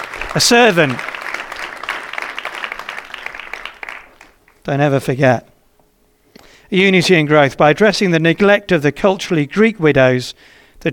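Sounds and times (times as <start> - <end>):
audience applause for the presentation of a tea towel: 0.0 - 4.6
speech: 0.4 - 1.1, 4.7 - 5.5, 6.7 - 10.9.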